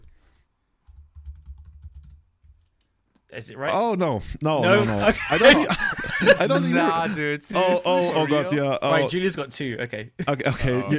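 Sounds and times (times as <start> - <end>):
typing on a computer keyboard: 0.9 - 2.9
speech: 3.3 - 10.9
laughter: 4.6 - 8.8, 10.2 - 10.9.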